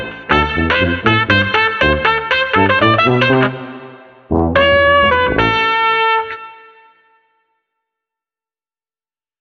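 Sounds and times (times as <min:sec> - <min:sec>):
street trumpet combo playing oompa music without drums: 0:00.0 - 0:07.2.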